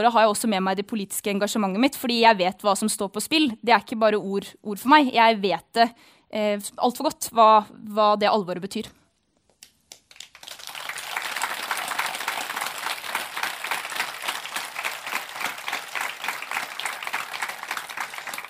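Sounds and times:
speech: 0.0 - 9.0
warm audience applause: 9.9 - 18.4.

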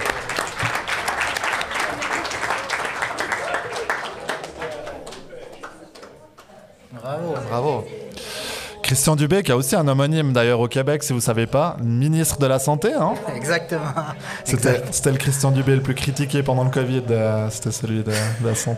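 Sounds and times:
audience applause: 0.0 - 6.5
speech: 8.9 - 18.7
laughter: 13.1 - 15.9, 17.8 - 18.7.

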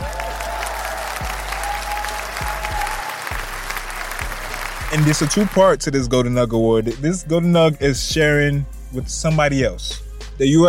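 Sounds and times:
round of applause: 0.0 - 5.6
speech: 4.9 - 10.6.

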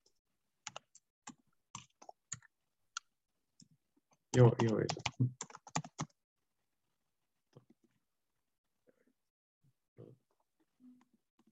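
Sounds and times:
typing on a computer keyboard while entering an email address: 0.6 - 2.5, 4.4 - 6.2
speech: 4.4 - 5.5.

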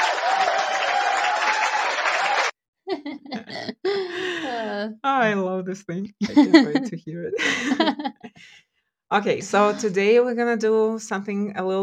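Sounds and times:
cheering and clapping: 0.0 - 2.6
laughter: 2.1 - 4.7, 6.2 - 8.4
speech: 4.8 - 11.8.

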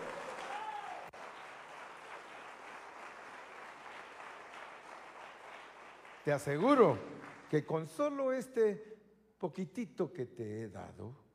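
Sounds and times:
audience applauding: 0.0 - 8.1
speech: 6.3 - 11.2.

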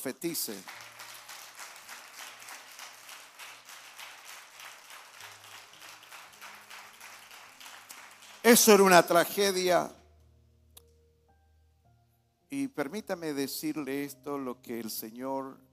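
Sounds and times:
speech: 0.0 - 0.9, 8.5 - 10.0, 12.5 - 15.7
audience applauding: 0.0 - 9.6.

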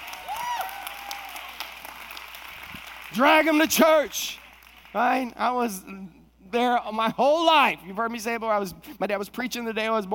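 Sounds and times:
crowd applauding: 0.0 - 5.3
speech: 3.2 - 10.1.

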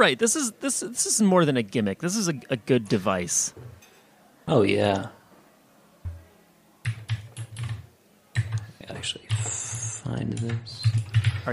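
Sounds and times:
speech: 0.0 - 3.7, 4.5 - 5.2, 9.0 - 9.3, 10.1 - 11.5
vigorous typing on a computer keyboard: 6.8 - 9.5, 10.3 - 11.5.

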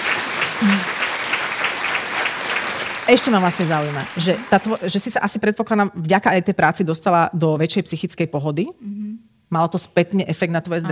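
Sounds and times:
applause from a group of people: 0.0 - 5.4
speech: 0.6 - 0.9, 3.1 - 10.9.

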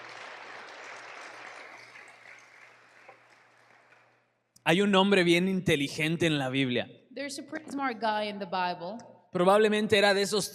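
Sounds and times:
audience applause: 0.0 - 4.3
speech: 4.7 - 10.5.

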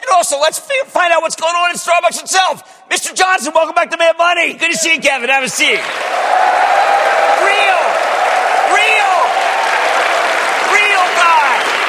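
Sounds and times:
speech: 0.2 - 6.7
studio audience applause: 5.6 - 11.8
whooping cheers: 5.9 - 11.8.

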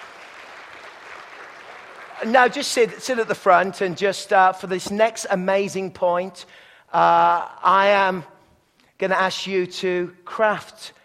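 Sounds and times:
crowd clapping: 0.0 - 3.6
speech: 2.2 - 8.3, 9.0 - 11.0.

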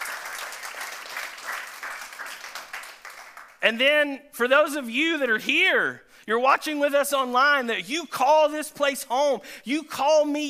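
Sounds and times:
audience hand clapping: 0.0 - 3.6
speech: 3.6 - 10.4.

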